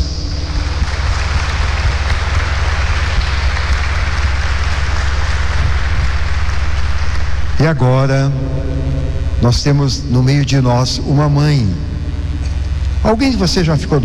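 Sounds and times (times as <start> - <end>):
applause: 0.0 - 8.2
speech: 7.6 - 11.9, 13.0 - 14.0.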